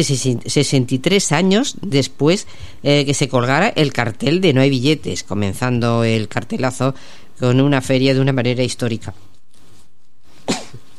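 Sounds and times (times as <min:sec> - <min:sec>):
speech: 0:00.0 - 0:09.3
person with allergies sneezing: 0:10.4 - 0:10.9.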